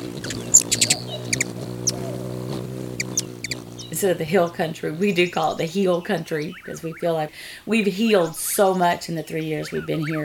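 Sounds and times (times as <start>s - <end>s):
steady low humming drone: 0.0s - 7.0s
songbirds chirping in a meadow: 0.0s - 10.2s
speech: 4.0s - 10.2s.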